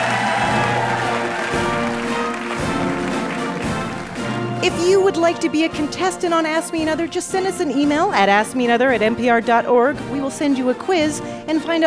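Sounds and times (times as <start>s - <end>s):
audience applauding: 0.0s - 4.6s
speech: 4.6s - 11.8s.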